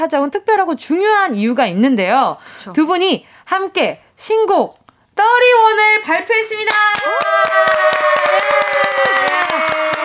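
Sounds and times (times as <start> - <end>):
speech: 0.0 - 9.8
audience cheering: 6.9 - 10.0.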